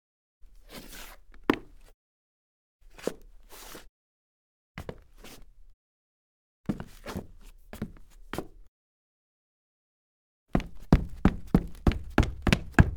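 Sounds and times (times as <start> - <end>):
soft Foley footsteps on wood: 10.6 - 12.9.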